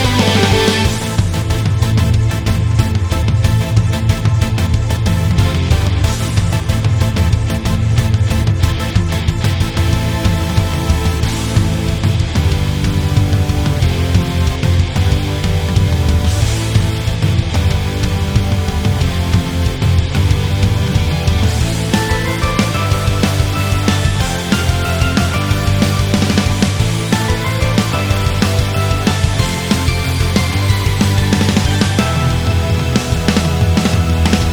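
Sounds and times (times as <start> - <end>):
RPG battle music: 0.0 - 34.5.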